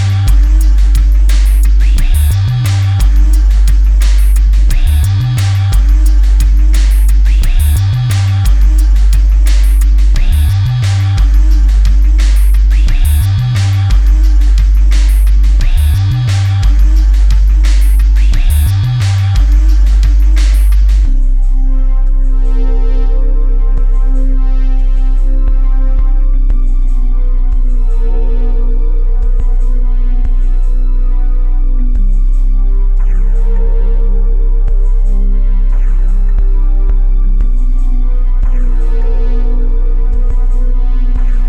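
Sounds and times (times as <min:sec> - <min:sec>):
loudspeaker bass test tone: 0:00.0 - 0:41.4.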